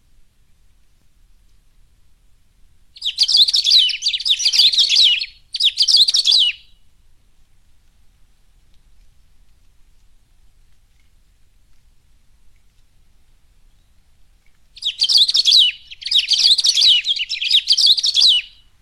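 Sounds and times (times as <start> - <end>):
Saffron-billed sparrow singing rapid tangled twittering phrases: 3.0 - 6.8, 14.8 - 18.8.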